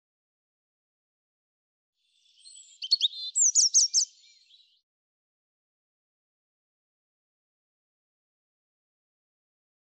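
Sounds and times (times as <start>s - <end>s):
European robin song: 2.0s - 4.8s.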